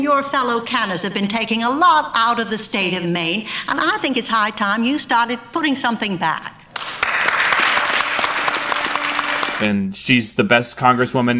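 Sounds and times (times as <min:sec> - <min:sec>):
speech: 0:00.0 - 0:06.6, 0:09.6 - 0:11.3
crowd applause in film scene: 0:06.7 - 0:09.8.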